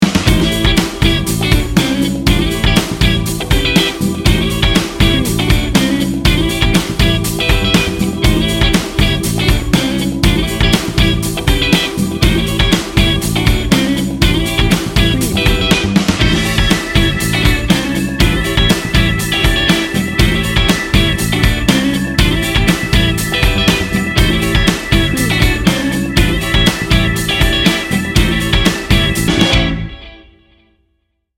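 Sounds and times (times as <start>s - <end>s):
funky fun music: 0.0s - 30.4s.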